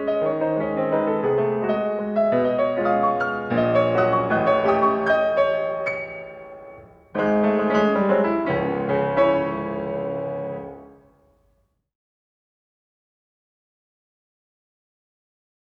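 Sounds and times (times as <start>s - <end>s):
piano mazurka in C sharp minor: 0.0s - 11.6s.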